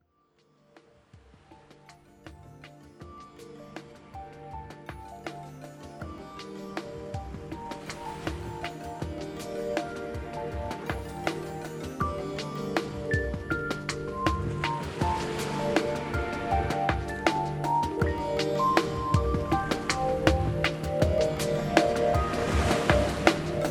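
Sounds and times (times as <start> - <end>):
ocean water: 1.6 - 23.6.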